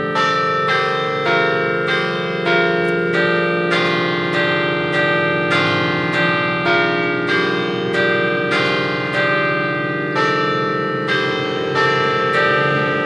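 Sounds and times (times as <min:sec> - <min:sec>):
carillon bells in Siviriez: 0:00.0 - 0:13.0.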